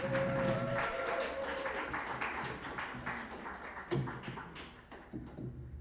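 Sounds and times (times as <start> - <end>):
applause: 0.0 - 5.7.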